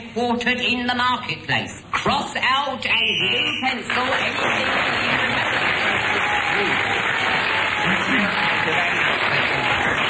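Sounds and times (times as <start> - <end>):
speech: 0.2 - 5.7, 6.6 - 7.1
audience cheering: 4.5 - 10.0.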